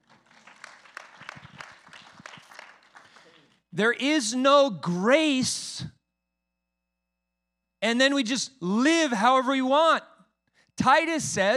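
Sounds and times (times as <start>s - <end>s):
audience clapping: 0.0s - 3.6s
speech: 3.8s - 5.9s, 7.8s - 10.1s, 10.8s - 11.5s.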